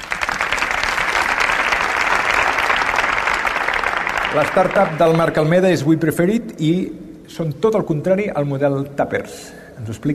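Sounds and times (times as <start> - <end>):
audience applause: 0.0 - 5.5
speech: 4.4 - 10.1.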